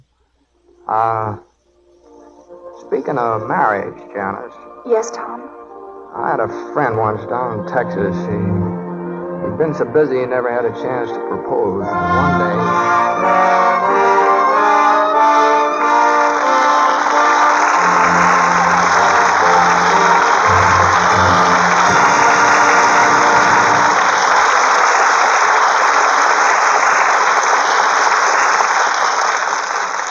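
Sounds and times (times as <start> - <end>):
speech: 0.9 - 1.5, 2.9 - 8.7, 9.4 - 14.2
audience applause: 6.4 - 8.7, 10.1 - 30.0.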